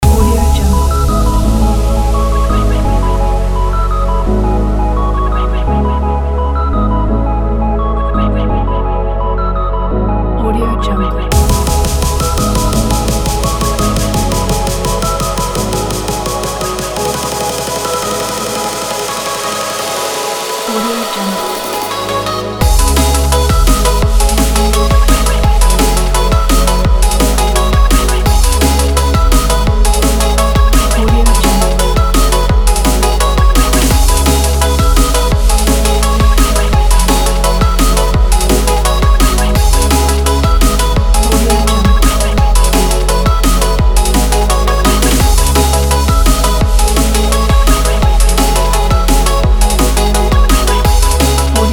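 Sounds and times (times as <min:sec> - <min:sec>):
pop drums: 0:00.0 - 0:03.0, 0:11.3 - 0:51.7
pop bass: 0:00.0 - 0:51.7.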